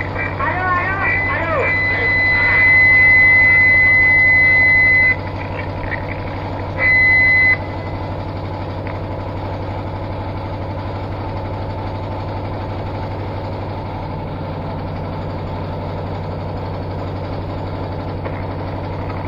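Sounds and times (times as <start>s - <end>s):
industrial soundcheck: 0.0s - 10.1s.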